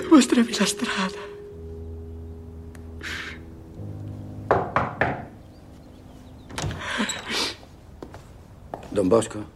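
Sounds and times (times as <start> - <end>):
speech: 0.1 - 1.3, 9.0 - 9.5
knocking on a door: 4.5 - 5.4.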